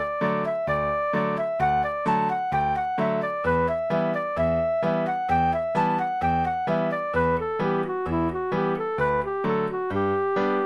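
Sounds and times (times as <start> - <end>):
reel tune: 0.0 - 10.6.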